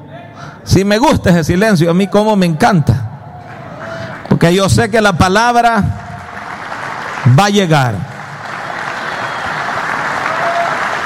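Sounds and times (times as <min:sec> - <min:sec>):
speech: 0:00.7 - 0:03.0, 0:04.4 - 0:06.0, 0:07.2 - 0:08.1
reluctant applause from audience: 0:06.0 - 0:11.0.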